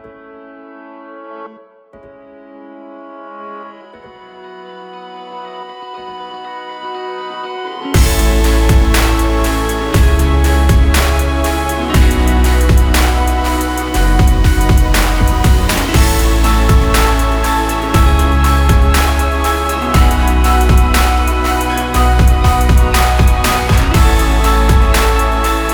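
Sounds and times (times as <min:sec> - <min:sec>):
instrumental music: 0:05.3 - 0:25.7.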